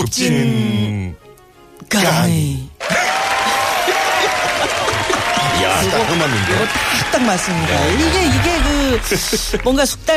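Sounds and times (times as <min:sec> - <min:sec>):
speech: 0:00.1 - 0:01.2, 0:01.8 - 0:03.0, 0:05.6 - 0:10.1
laughter: 0:02.8 - 0:09.9
crowd applauding: 0:02.8 - 0:10.0.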